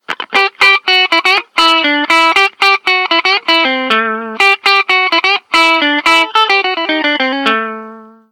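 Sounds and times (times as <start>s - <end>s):
jazzy music: 0.2s - 8.3s.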